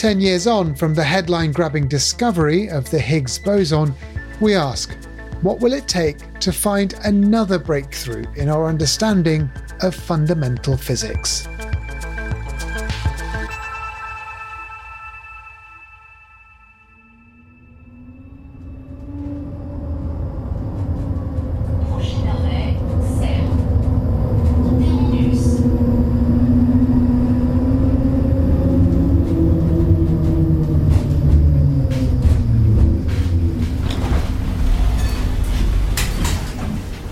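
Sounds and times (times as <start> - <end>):
speech: 0.0 - 11.7
tram running and stopping: 0.0 - 37.0.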